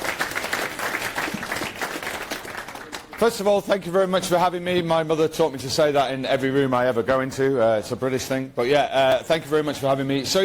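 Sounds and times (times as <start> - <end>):
conference audience applause welcoming a speaker: 0.0 - 3.3
speech: 3.2 - 10.4.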